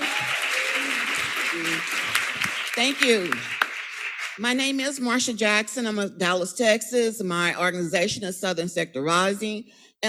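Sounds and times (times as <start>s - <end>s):
applause at a Dallas community event: 0.0s - 4.7s
speech: 1.6s - 2.1s, 2.8s - 3.6s, 4.4s - 10.0s.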